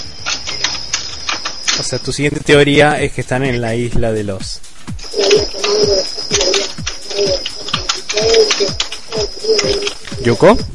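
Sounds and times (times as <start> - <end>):
typing on a keyboard: 0.2 - 2.0, 5.0 - 10.6
speech: 1.8 - 6.6, 7.2 - 7.5, 8.2 - 10.7.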